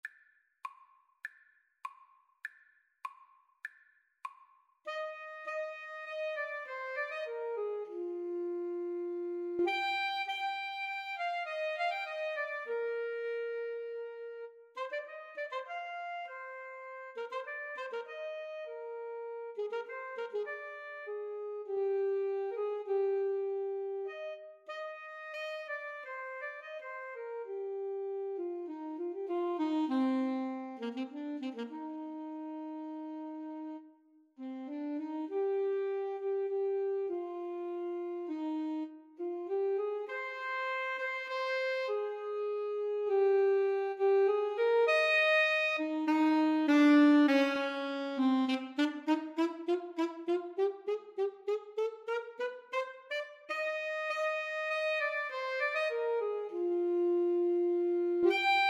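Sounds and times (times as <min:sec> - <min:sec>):
alto saxophone duet: 0:04.9 - 0:58.6.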